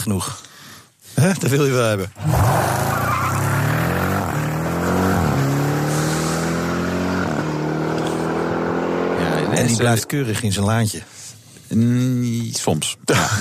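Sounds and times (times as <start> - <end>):
speech: 0.0 - 0.5, 1.2 - 2.7, 9.6 - 13.3
V8 engine revving through the gears: 2.2 - 10.4.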